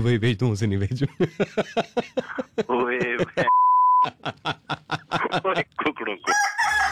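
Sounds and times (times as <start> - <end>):
speech: 0.0 - 3.4
laughter: 1.0 - 6.0
rooster crow in a short radio jingle: 6.3 - 6.8.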